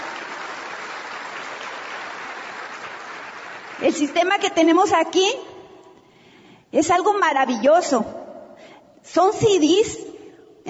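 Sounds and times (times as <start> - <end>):
audience applause: 0.0 - 3.9
speech: 3.8 - 5.5, 6.7 - 8.2, 9.1 - 10.0.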